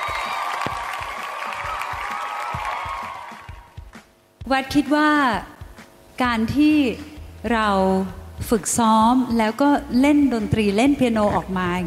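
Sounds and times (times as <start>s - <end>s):
commentators clapping hands: 0.1s - 4.1s
speech: 4.5s - 5.5s, 6.2s - 11.8s.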